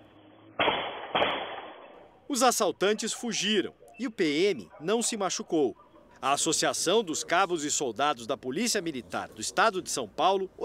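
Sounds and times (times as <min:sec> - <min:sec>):
gunshots fired by police officer: 0:00.6 - 0:02.0
speech: 0:02.3 - 0:10.6.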